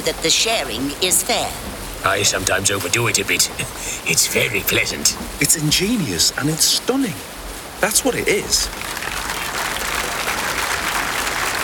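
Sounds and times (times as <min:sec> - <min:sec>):
speech: 0:00.0 - 0:09.0
crowd applauding: 0:08.1 - 0:11.6.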